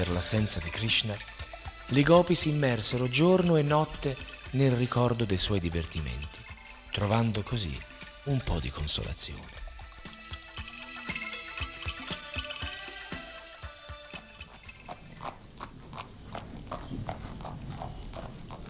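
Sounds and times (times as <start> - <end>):
speech: 0.0 - 9.6
hoofbeats of a horse pulling a chariot at speed: 0.0 - 18.6.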